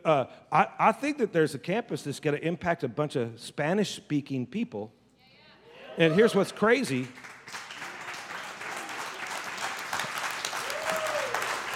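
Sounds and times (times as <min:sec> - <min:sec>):
speech: 0:00.0 - 0:05.0, 0:06.0 - 0:07.6
crowd applauding: 0:06.0 - 0:11.7.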